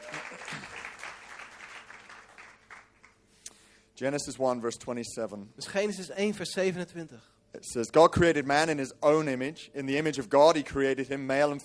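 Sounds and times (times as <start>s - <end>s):
church audience applauding: 0.0s - 3.2s
speech: 4.0s - 11.6s.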